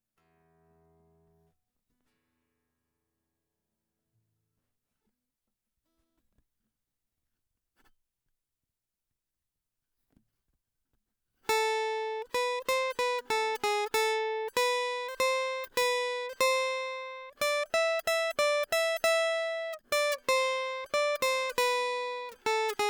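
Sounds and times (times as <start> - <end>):
guitar: 11.5 - 22.8.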